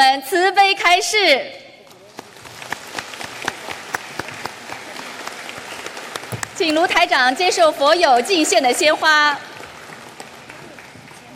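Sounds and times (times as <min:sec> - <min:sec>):
speech: 0:00.2 - 0:01.6, 0:06.6 - 0:09.5
warm audience applause: 0:02.0 - 0:06.6, 0:08.8 - 0:11.3.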